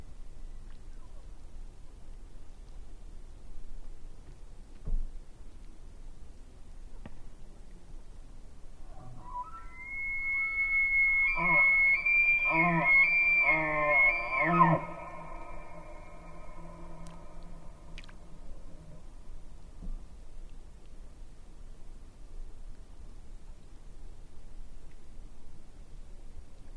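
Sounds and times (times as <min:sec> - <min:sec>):
elk bugling during the rut at Yellowstone Lake: 0:08.8 - 0:18.9.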